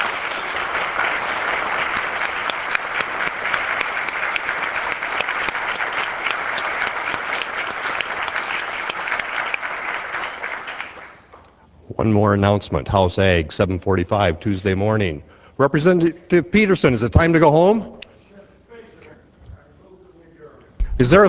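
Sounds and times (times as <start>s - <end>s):
applause from a legislature gallery: 0.0s - 11.6s
speech: 12.0s - 18.0s, 21.0s - 21.2s.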